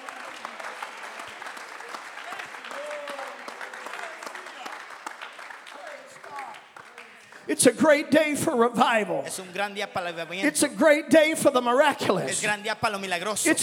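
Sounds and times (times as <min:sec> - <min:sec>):
audience clapping hands: 0:00.0 - 0:10.5
speech: 0:07.5 - 0:13.6.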